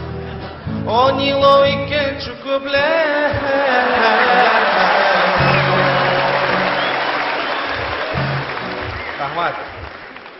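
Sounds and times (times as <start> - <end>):
speech: 0.9 - 4.5, 9.3 - 9.8
audience applause: 3.8 - 10.3.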